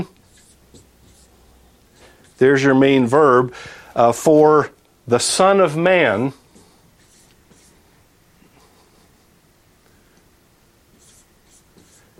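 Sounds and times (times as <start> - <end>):
handwriting a Greek sentence: 0.2 - 1.4, 6.5 - 7.8, 10.9 - 12.1
speech: 2.4 - 6.4.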